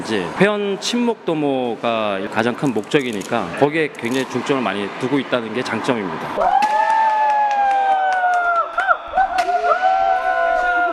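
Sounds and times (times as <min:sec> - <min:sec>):
speech: 0:00.1 - 0:06.8
people cheering: 0:04.3 - 0:10.9.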